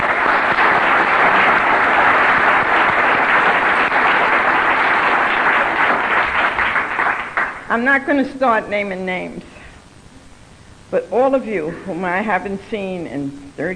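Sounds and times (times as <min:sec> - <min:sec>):
loud sustained applause from a large audience: 0:00.0 - 0:07.7
speech: 0:07.7 - 0:09.5, 0:10.9 - 0:13.7.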